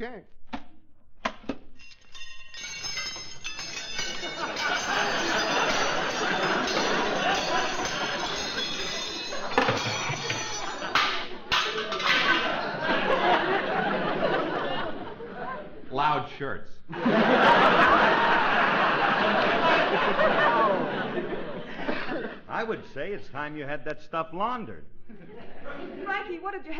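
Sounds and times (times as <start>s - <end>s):
speech: 0.0s - 0.4s, 16.4s - 17.2s, 22.6s - 26.7s
silverware clattering out of a case: 1.7s - 13.1s
laughter: 3.8s - 15.9s, 16.9s - 22.9s, 25.0s - 26.4s.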